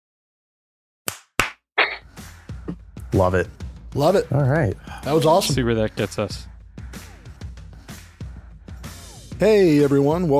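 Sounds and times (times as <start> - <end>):
hand clap for audio sync: 1.1 - 1.6
speech: 3.1 - 6.5, 9.4 - 10.3.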